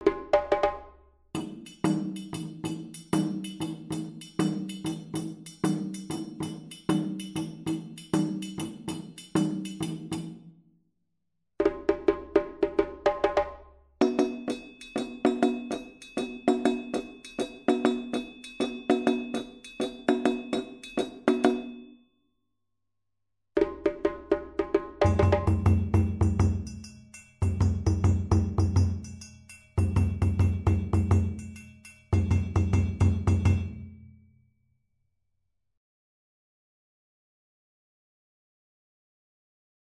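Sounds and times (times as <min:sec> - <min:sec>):
djembe: 0:00.0 - 0:10.4, 0:11.6 - 0:21.7, 0:23.6 - 0:26.8, 0:27.4 - 0:29.1, 0:32.2 - 0:33.8
dunun drums: 0:00.0 - 0:10.5, 0:11.6 - 0:21.9, 0:23.6 - 0:34.1.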